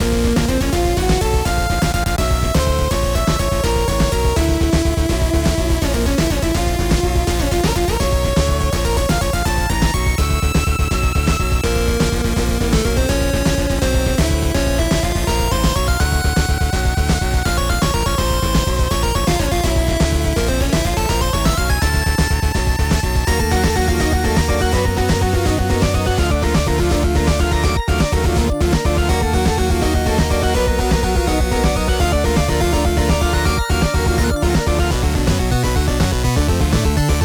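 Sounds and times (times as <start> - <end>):
boss fight music loop: 0.0 - 37.2.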